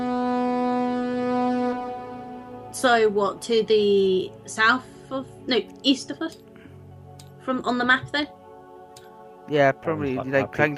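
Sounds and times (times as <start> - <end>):
loud trumpet horn blown across river: 0.0 - 4.5
speech: 2.8 - 6.4, 7.4 - 8.4, 9.5 - 10.7.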